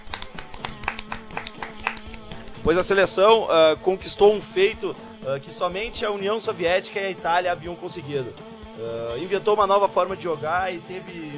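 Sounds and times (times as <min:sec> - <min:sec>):
faint rapid hand clapping congratulating the Brazilian volleyball team: 0:00.0 - 0:02.7
speech: 0:02.6 - 0:11.3.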